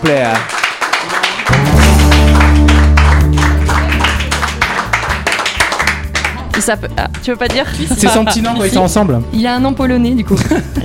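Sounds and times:
speech: 0:00.0 - 0:00.6, 0:06.6 - 0:10.8
applause for the guest: 0:00.0 - 0:07.7.

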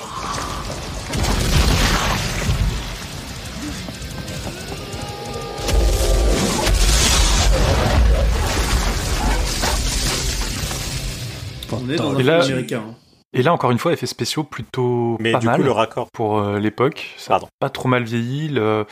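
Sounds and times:
explosion of a character blowing up in a film scene: 0:00.3 - 0:11.6
speech: 0:12.0 - 0:18.8.

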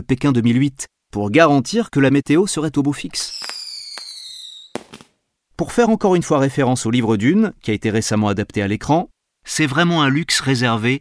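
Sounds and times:
speech: 0:00.0 - 0:03.5, 0:05.6 - 0:10.9
rockets fired into the sky: 0:03.4 - 0:05.1.

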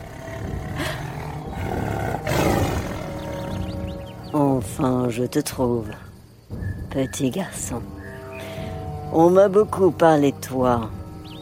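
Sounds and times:
tiger roaring: 0:00.0 - 0:03.8
speech: 0:04.7 - 0:06.1, 0:06.9 - 0:08.0, 0:09.1 - 0:11.0.

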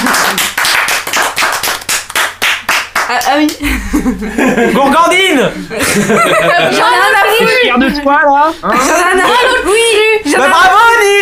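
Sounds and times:
group clapping: 0:00.0 - 0:03.7
speech: 0:03.2 - 0:11.2
laughter: 0:03.6 - 0:10.5.

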